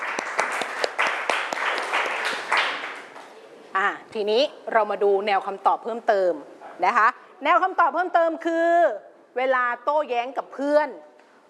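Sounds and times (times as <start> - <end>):
classroom applause for a student: 0.0 - 3.4
speech: 3.8 - 11.4.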